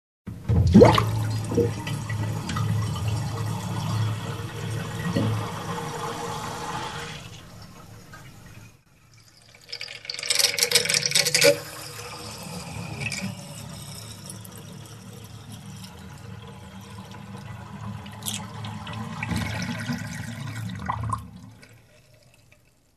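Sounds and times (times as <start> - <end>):
water draining in a sink: 0.3 - 22.9.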